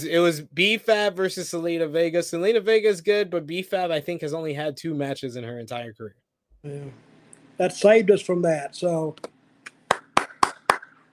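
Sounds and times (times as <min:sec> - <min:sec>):
speech: 0:00.0 - 0:09.4
hand claps: 0:09.2 - 0:11.1.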